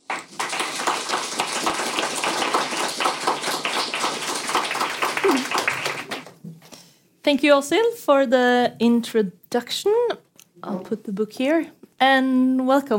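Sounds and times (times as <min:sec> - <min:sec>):
audience applause welcoming two speakers to a poetry event in Oslo: 0:00.0 - 0:06.4
speech: 0:07.3 - 0:12.9.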